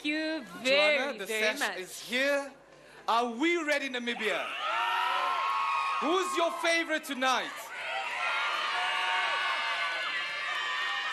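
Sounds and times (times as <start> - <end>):
speech: 0.0 - 4.8, 6.0 - 7.6
scattered high whoops and shouts: 4.4 - 6.9, 7.5 - 11.1
large crowd cheering and applauding: 4.6 - 11.1.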